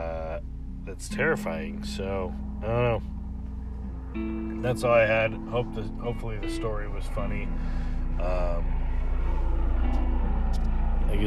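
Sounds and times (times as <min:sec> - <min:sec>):
speech: 0:00.9 - 0:03.2, 0:04.1 - 0:08.8, 0:10.5 - 0:11.2
Arizona news helicopter flying overhead: 0:03.9 - 0:11.2.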